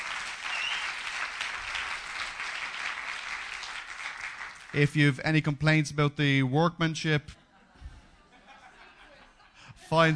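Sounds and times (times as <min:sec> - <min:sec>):
audience applause: 0:00.0 - 0:04.8
speech: 0:04.7 - 0:07.4, 0:09.9 - 0:10.1
laughter: 0:07.4 - 0:10.1.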